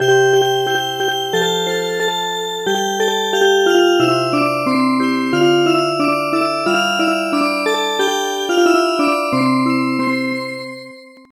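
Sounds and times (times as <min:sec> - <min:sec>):
music box: 0:00.0 - 0:11.3.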